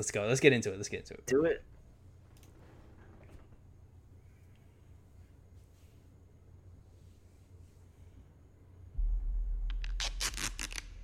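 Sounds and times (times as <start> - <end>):
speech: 0.0 - 1.7
low rumble in The Batman trailer: 8.9 - 11.0
tape pulled off a roll and wrapped in The Batman trailer: 9.7 - 11.0.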